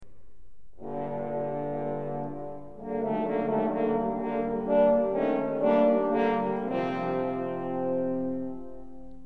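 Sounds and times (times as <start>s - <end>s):
horns playing: 0.8s - 9.0s.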